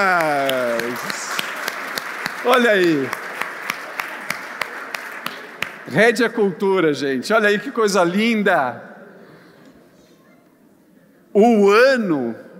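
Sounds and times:
speech: 0.0 - 0.4, 2.4 - 3.2, 5.9 - 8.9, 11.4 - 12.5
round of applause: 0.0 - 6.0.

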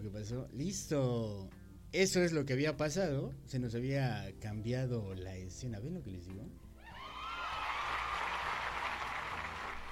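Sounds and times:
speech: 0.3 - 6.6
applause: 7.2 - 9.8.

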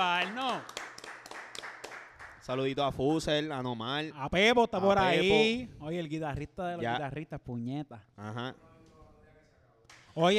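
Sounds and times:
speech: 0.0 - 0.8, 2.4 - 8.7, 10.2 - 10.3
hand clapping: 0.0 - 2.6, 9.9 - 10.2.

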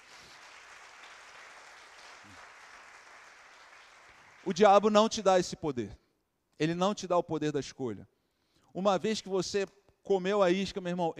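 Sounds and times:
audience applause: 0.0 - 4.6
speech: 4.4 - 6.0, 6.6 - 11.1.

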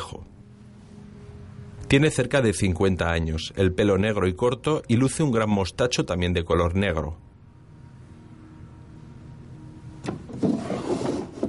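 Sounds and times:
speech: 1.9 - 7.2
drawer of a chest of drawers being pulled open: 10.0 - 11.4.

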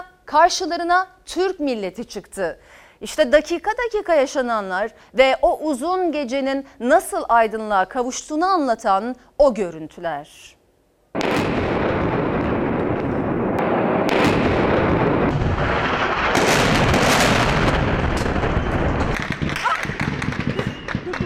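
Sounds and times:
speech: 0.0 - 10.6
gunfire at a crowd: 11.2 - 21.2.

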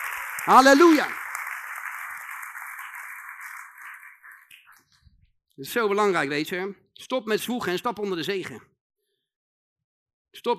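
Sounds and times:
audience applause: 0.0 - 4.8
speech: 0.4 - 1.2, 5.6 - 8.7, 10.3 - 10.5.

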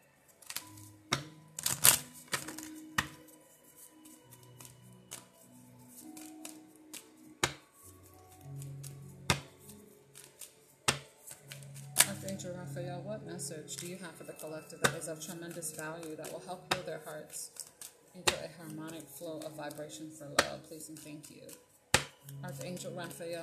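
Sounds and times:
healing angel oracle card deck being handled: 0.3 - 12.4, 13.8 - 23.3
speech: 13.1 - 17.6, 18.2 - 21.7, 22.4 - 23.4.

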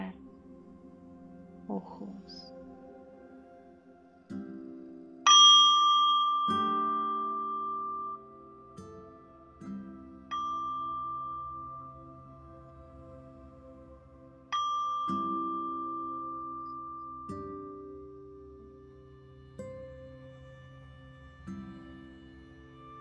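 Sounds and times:
speech: 1.7 - 2.6
singing bowl struck during a guided meditation: 5.2 - 13.0, 14.5 - 19.0.

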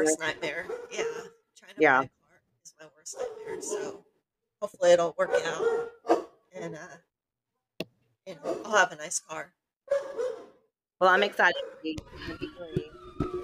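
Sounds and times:
people chatting: 0.0 - 2.1, 2.7 - 4.0, 4.6 - 5.7, 6.6 - 7.0, 8.3 - 9.5, 11.0 - 12.9
speech: 0.0 - 7.1, 8.3 - 10.4, 11.0 - 12.9
dogs barking frantically: 0.2 - 1.3, 3.1 - 4.0, 5.2 - 6.4, 8.4 - 8.8, 9.9 - 10.6.

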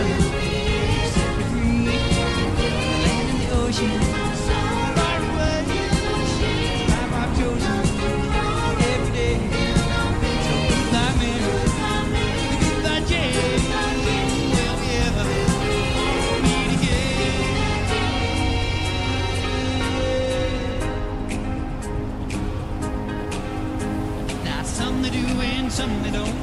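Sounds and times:
vehicle humming: 0.0 - 26.4.

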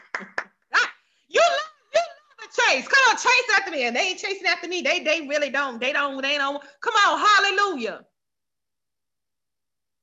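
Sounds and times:
hand clapping: 0.0 - 0.6
speech: 2.7 - 8.1.

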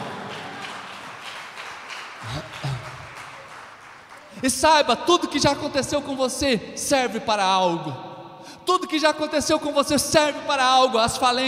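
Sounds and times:
audience applauding loudly: 0.0 - 4.7
speech: 4.4 - 8.1, 8.7 - 11.4.

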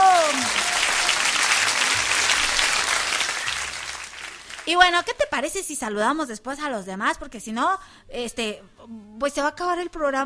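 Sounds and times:
audience applause: 0.0 - 4.8
speech: 4.7 - 10.2.

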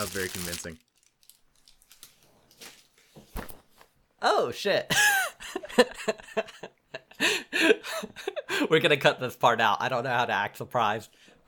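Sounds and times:
speech: 0.0 - 0.9, 4.2 - 5.1, 5.8 - 11.4
wrapping paper crinkling and tearing as a gift is unwrapped: 0.0 - 2.6.

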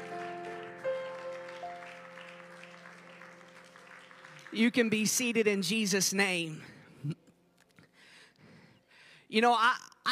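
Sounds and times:
audience clapping hands in praise: 0.0 - 5.5
speech: 4.5 - 7.2, 9.3 - 10.0.

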